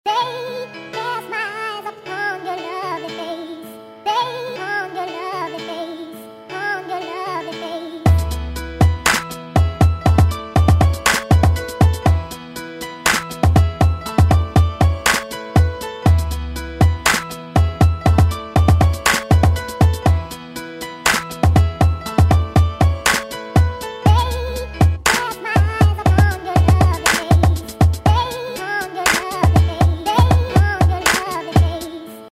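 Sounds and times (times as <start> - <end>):
music beat: 8.1 - 32.0.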